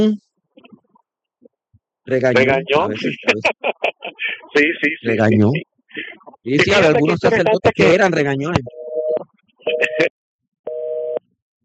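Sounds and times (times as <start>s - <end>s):
speech: 0.0s - 0.2s, 2.1s - 8.8s
laughter: 2.4s - 8.2s, 9.7s - 10.1s
telephone busy tone after a dropped call: 10.7s - 11.2s.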